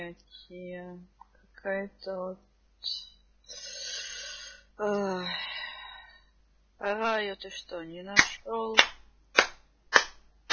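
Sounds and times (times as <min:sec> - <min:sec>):
speech: 0:00.1 - 0:03.6, 0:04.8 - 0:05.5, 0:06.8 - 0:09.0
sharp hand claps: 0:08.2 - 0:10.5.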